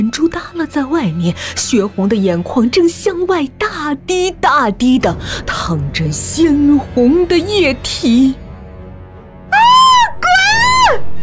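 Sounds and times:
speech: 0:00.0 - 0:08.4
woman screaming: 0:09.5 - 0:11.2.

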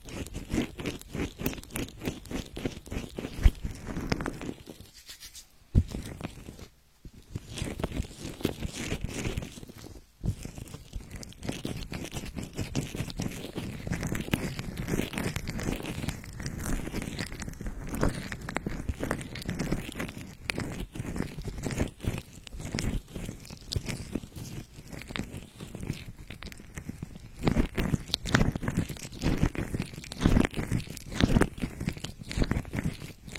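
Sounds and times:
ear massage crackly rubbing and scratching: 0:00.0 - 0:33.3.

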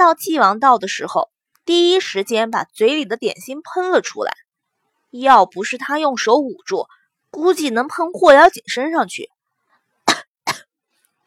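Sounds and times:
speech: 0:00.1 - 0:04.4, 0:05.1 - 0:09.4
person coughing: 0:10.1 - 0:10.7.

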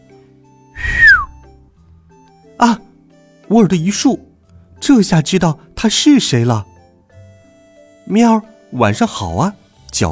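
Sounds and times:
whistling: 0:00.8 - 0:01.5
speech: 0:02.6 - 0:02.9, 0:03.5 - 0:06.7, 0:08.1 - 0:10.1.

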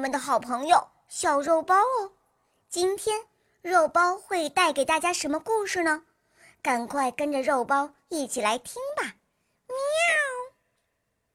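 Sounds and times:
speech: 0:00.0 - 0:10.1
cat meowing: 0:09.9 - 0:10.5.

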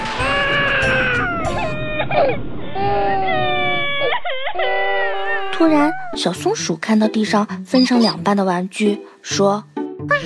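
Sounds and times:
narrator imitating two children crying, a piglet and a little elephant: 0:00.2 - 0:06.2
speech: 0:02.2 - 0:03.2, 0:05.6 - 0:10.2.

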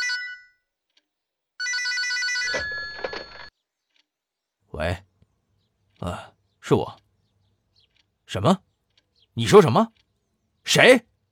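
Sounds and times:
old-fashioned telephone bell ringing: 0:00.0 - 0:00.7, 0:01.6 - 0:03.5
speech: 0:04.8 - 0:05.1, 0:06.0 - 0:07.0, 0:08.3 - 0:08.7, 0:09.4 - 0:10.0, 0:10.6 - 0:11.1.

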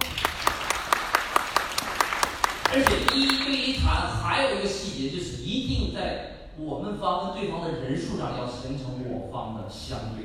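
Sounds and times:
audience applause: 0:00.0 - 0:03.6
speech: 0:04.0 - 0:10.2.

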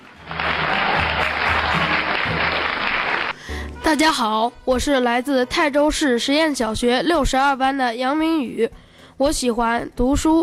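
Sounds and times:
audience applause: 0:00.0 - 0:03.5
speech: 0:03.9 - 0:10.4.

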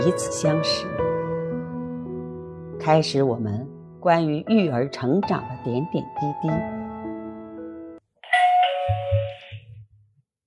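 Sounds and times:
speech: 0:00.0 - 0:01.0, 0:02.9 - 0:06.8
doorbell melodic chime: 0:08.2 - 0:09.7
buzzy doorbell ring: 0:08.3 - 0:09.6.

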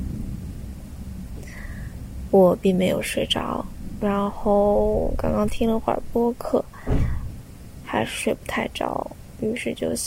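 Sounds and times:
thunder during summer night rain: 0:00.0 - 0:07.9
summer night rain: 0:00.0 - 0:10.0
speech: 0:02.3 - 0:07.0, 0:07.9 - 0:10.0.

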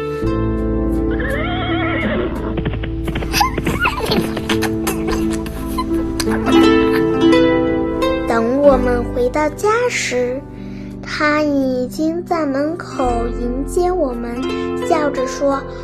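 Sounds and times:
steady sustained music: 0:00.0 - 0:15.8
horse neighing: 0:01.1 - 0:06.0
laughter: 0:03.2 - 0:07.5
speech: 0:09.4 - 0:10.5, 0:11.2 - 0:15.8.

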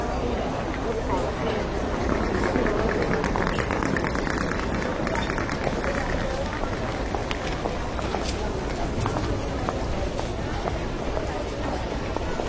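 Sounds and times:
murmur of overlapping voices in Shanghai Pudong International Airport waiting hall: 0:00.0 - 0:12.4
footsteps in airport waiting hall: 0:01.8 - 0:12.4.

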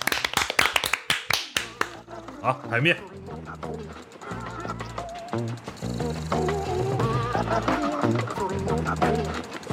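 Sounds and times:
hands clapping: 0:00.0 - 0:02.0
speech: 0:02.4 - 0:04.5, 0:05.4 - 0:06.8, 0:07.4 - 0:09.6.

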